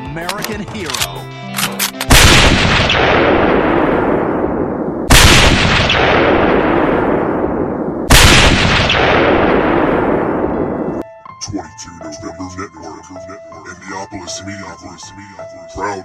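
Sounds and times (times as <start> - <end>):
speech: 0.2 - 1.8, 2.5 - 3.5, 12.6 - 16.0
gunshots from a gun on the grassy knoll: 1.6 - 11.0.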